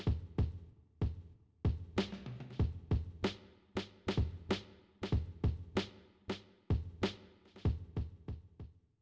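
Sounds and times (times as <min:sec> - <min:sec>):
drums: 0:00.0 - 0:08.8.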